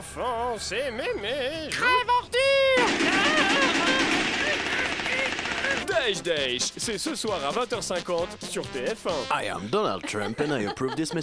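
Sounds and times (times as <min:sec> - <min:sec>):
speech: 0:00.0 - 0:03.5, 0:05.8 - 0:11.2
voice imitating machine gun fire: 0:02.8 - 0:05.9
laughter: 0:02.8 - 0:06.0, 0:09.6 - 0:11.2.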